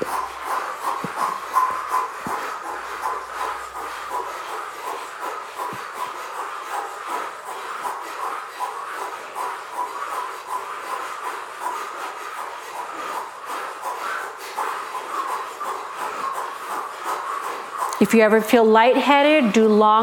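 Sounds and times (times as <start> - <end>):
forceful rhythmic cannon breathing: 0.0 - 20.0
speech: 18.0 - 20.0.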